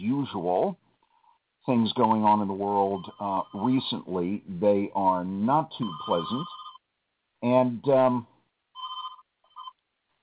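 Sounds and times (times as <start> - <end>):
speech: 0.2 - 0.8, 1.6 - 6.6, 7.4 - 8.3
cell phone ringing with a warbling electronic ringtone: 2.8 - 4.0, 5.8 - 6.8, 8.8 - 9.8.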